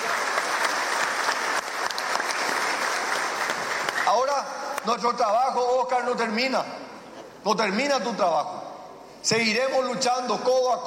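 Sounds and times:
audience applause: 0.0 - 4.3
speech: 4.8 - 6.8, 7.4 - 8.6, 9.2 - 10.8.

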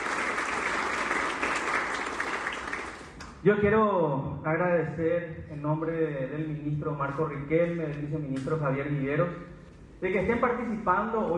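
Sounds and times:
audience applause: 0.0 - 3.2
speech: 3.4 - 11.3.

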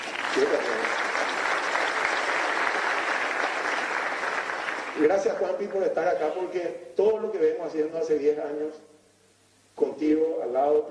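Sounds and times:
audience applause: 0.0 - 5.4
speech: 0.4 - 1.0, 5.0 - 8.9, 9.8 - 10.8.

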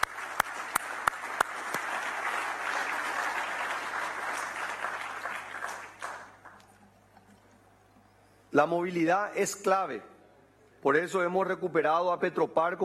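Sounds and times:
audience applause: 0.0 - 6.7
speech: 8.6 - 10.1, 10.8 - 12.8.

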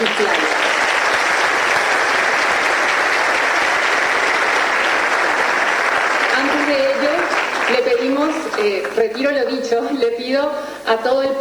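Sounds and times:
sustained applause from a large audience: 0.0 - 8.9
speech: 8.6 - 11.3.

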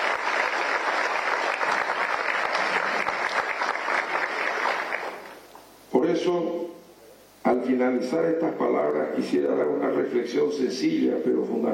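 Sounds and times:
audience applause: 0.0 - 5.5
speech: 6.2 - 6.7, 7.6 - 11.7.

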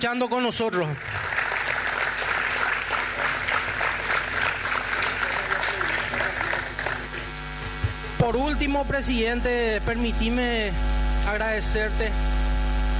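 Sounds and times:
speech: 0.0 - 1.2, 8.2 - 12.3
audience applause: 1.0 - 8.2.

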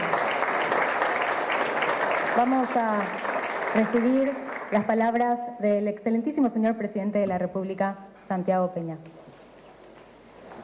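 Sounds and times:
audience applause: 0.0 - 5.0
speech: 2.4 - 9.2.

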